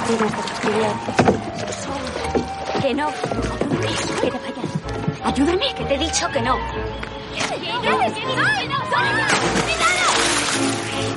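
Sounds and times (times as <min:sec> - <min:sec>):
person falling into water with a splash: 0:00.0 - 0:03.3, 0:09.2 - 0:11.1
speech: 0:00.1 - 0:02.1, 0:02.8 - 0:11.1
agitated people shouting: 0:07.6 - 0:10.4.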